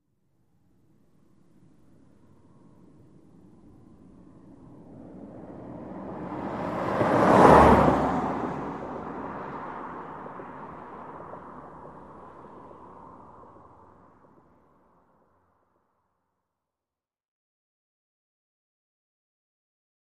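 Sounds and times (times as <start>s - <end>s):
sedan passing right to left at 55 mph: 3.5s - 15.0s.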